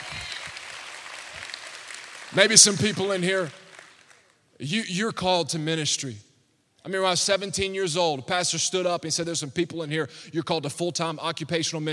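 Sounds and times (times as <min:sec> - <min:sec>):
audience hand clapping: 0:00.0 - 0:04.4
speech: 0:02.3 - 0:03.6, 0:04.6 - 0:11.9.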